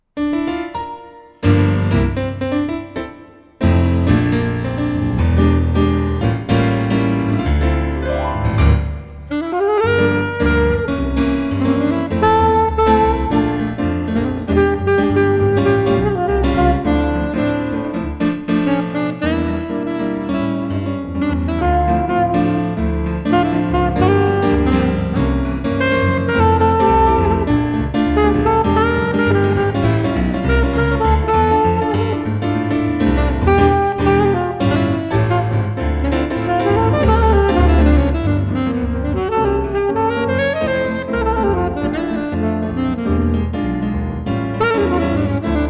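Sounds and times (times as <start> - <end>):
saxophone: 1.0 - 45.6.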